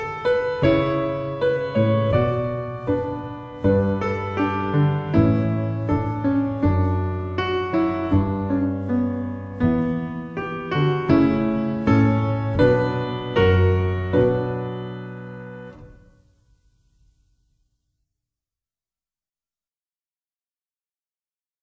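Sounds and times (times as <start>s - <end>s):
chanson accompaniment: 0.0s - 16.3s.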